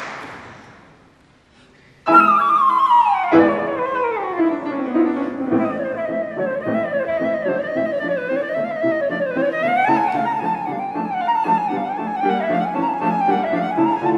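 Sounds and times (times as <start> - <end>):
flute: 2.1 - 14.1.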